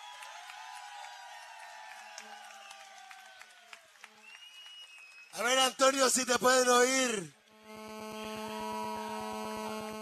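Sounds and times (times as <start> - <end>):
audience applause: 0.0 - 6.0
speech: 5.4 - 7.4.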